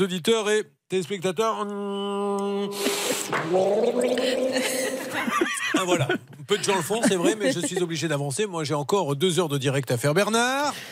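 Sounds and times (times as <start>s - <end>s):
speech: 0.0s - 10.9s
person drinking: 2.7s - 5.2s
laughter: 4.2s - 8.1s.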